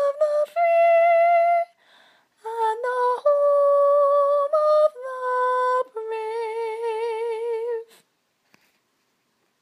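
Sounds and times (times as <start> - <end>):
soprano singing: 0.0 - 1.8, 2.4 - 8.0.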